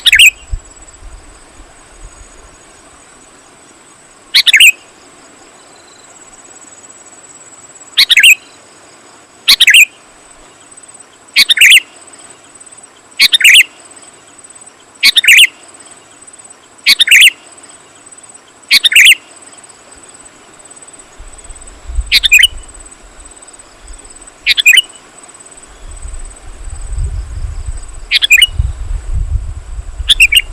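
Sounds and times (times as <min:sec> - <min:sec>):
sooty-headed bulbul bubbling call: 0:00.0 - 0:00.5, 0:04.3 - 0:04.8, 0:08.0 - 0:08.4, 0:09.5 - 0:09.9, 0:11.4 - 0:11.8, 0:13.2 - 0:13.7, 0:15.0 - 0:15.5, 0:16.9 - 0:17.4, 0:18.7 - 0:19.2, 0:22.1 - 0:22.7, 0:24.4 - 0:25.0, 0:28.1 - 0:28.6, 0:30.0 - 0:30.5.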